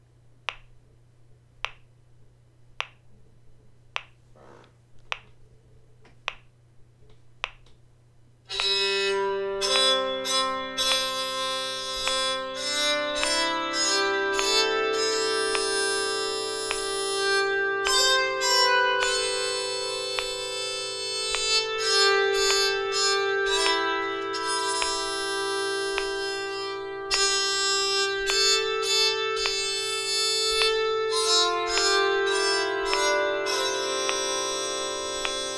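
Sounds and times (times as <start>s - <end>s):
bowed psaltery: 8.5s - 35.5s.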